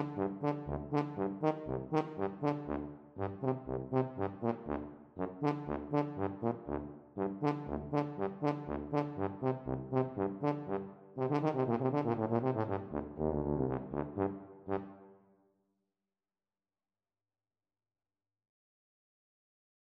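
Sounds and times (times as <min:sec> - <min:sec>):
tuba duet: 0:00.0 - 0:15.1.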